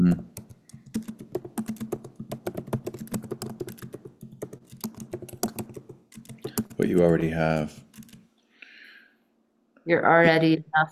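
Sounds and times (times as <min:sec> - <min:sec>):
speech: 0:00.0 - 0:00.3, 0:06.8 - 0:07.8, 0:09.9 - 0:10.9
typing on a computer keyboard: 0:00.0 - 0:08.2.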